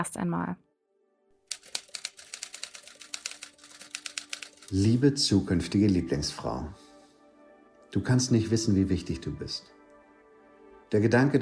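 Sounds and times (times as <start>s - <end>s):
speech: 0.0s - 0.7s, 4.7s - 6.8s, 7.9s - 9.8s, 10.9s - 11.3s
typing on a typewriter: 1.5s - 5.0s.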